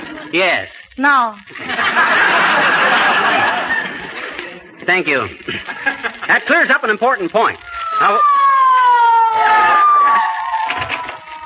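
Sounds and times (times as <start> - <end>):
laughter: 0.0 - 0.5, 1.5 - 4.7, 5.4 - 6.6
speech: 0.3 - 3.0, 4.9 - 8.4
police car siren wailing: 7.6 - 11.4.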